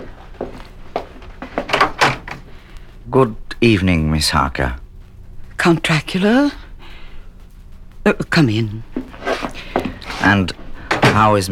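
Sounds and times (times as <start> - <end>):
wooden door being opened: 1.1 - 2.5, 9.1 - 11.5
latch rattling: 1.6 - 2.5
speech: 3.1 - 4.8, 5.6 - 6.6, 8.0 - 9.0, 10.2 - 11.5.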